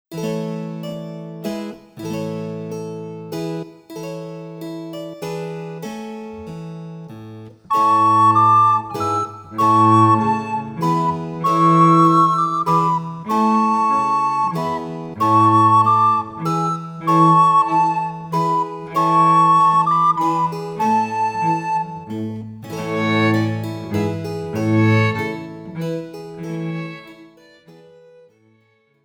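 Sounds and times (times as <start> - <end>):
musette music: 0.1 - 29.0.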